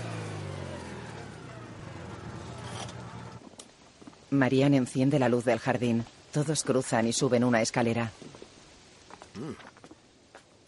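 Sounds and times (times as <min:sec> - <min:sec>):
car engine hum on a dirt road: 0:00.0 - 0:03.4
tires crunching gravel: 0:00.0 - 0:03.5
speech: 0:04.3 - 0:08.3, 0:09.4 - 0:09.7.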